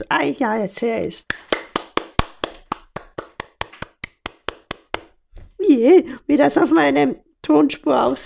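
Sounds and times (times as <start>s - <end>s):
speech: 0.0s - 1.5s, 5.7s - 8.2s
hand clapping: 1.2s - 5.2s.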